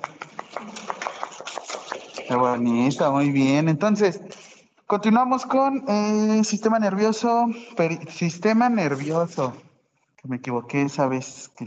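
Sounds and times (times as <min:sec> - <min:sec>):
group applause: 0:00.0 - 0:02.4
speech: 0:02.3 - 0:09.6, 0:10.2 - 0:11.6.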